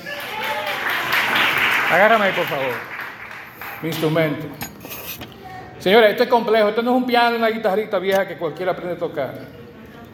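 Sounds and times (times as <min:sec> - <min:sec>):
crowd applause: 0:00.0 - 0:03.9
speech: 0:01.9 - 0:02.9, 0:03.8 - 0:09.6
murmur of voices: 0:05.2 - 0:10.1.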